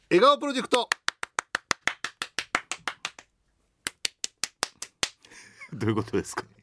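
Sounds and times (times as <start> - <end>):
speech: 0.1 - 1.0, 5.7 - 6.6
person clapping: 0.7 - 5.3
laughter: 5.4 - 6.4.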